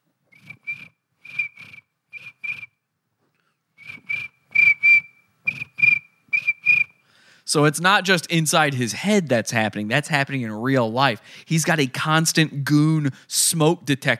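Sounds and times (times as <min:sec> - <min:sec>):
person whistling in imitation of crickets chirping: 0:00.4 - 0:02.8, 0:03.8 - 0:07.0
speech: 0:07.5 - 0:14.1.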